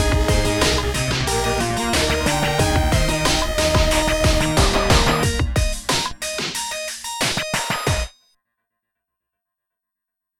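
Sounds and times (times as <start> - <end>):
techno music: 0.0 - 8.1.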